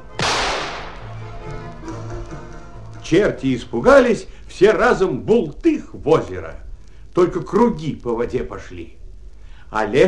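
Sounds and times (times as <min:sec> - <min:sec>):
low humming tones: 0:00.0 - 0:10.0
shotgun blast: 0:00.2 - 0:01.2
speech: 0:03.1 - 0:06.6, 0:07.2 - 0:09.0, 0:09.7 - 0:10.0.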